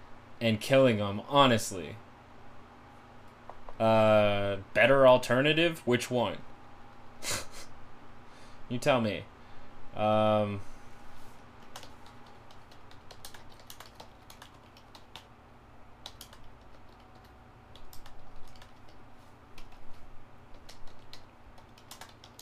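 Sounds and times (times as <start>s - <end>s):
speech: 0.4s - 2.0s, 3.8s - 6.5s, 7.2s - 7.4s, 8.7s - 9.3s, 10.0s - 10.7s
typing on a computer keyboard: 11.6s - 15.3s, 16.0s - 19.0s, 19.6s - 22.4s.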